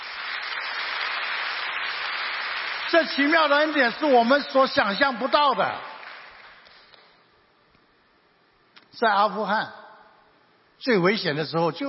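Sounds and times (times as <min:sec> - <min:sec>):
church congregation clapping for God: 0:00.0 - 0:07.2
speech: 0:02.9 - 0:05.9, 0:09.0 - 0:09.8, 0:10.8 - 0:11.8.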